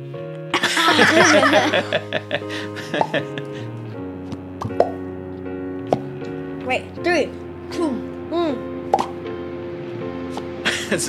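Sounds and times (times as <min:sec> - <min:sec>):
people laughing: 0:00.6 - 0:03.7, 0:10.6 - 0:11.0
speech: 0:01.0 - 0:03.7, 0:06.7 - 0:09.2, 0:10.3 - 0:11.0
three hosts making mouth popping noises: 0:04.3 - 0:05.0, 0:08.9 - 0:09.2.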